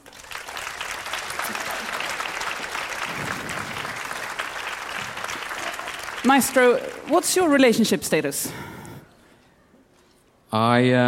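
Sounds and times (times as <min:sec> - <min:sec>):
audience applause for conductor: 0:00.0 - 0:07.9
speech: 0:06.2 - 0:08.7, 0:10.5 - 0:11.0.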